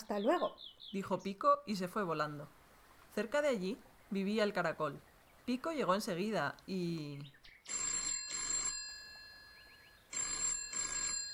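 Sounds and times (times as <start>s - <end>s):
speech: 0.1s - 2.6s, 3.2s - 7.4s
doorbell ringing: 7.7s - 11.3s.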